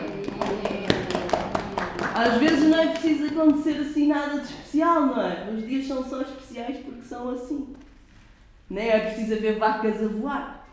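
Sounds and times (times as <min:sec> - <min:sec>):
people clapping: 0:00.0 - 0:03.8
speech: 0:02.2 - 0:07.8, 0:08.7 - 0:10.7.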